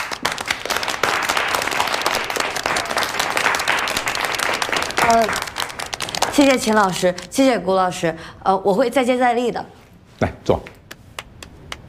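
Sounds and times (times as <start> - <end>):
group applause: 0.0 - 7.3
speech: 5.1 - 5.4, 6.4 - 10.7.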